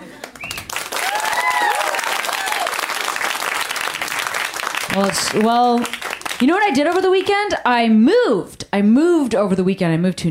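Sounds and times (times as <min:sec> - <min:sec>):
crowd applauding: 0:00.0 - 0:07.2
whoops and cheers: 0:00.4 - 0:03.0
speech: 0:05.0 - 0:10.3.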